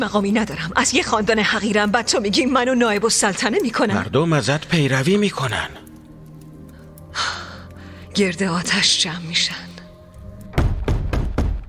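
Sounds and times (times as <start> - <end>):
speech: 0.0 - 5.9, 8.2 - 9.6
heavy knocking on a wooden door: 10.5 - 11.6.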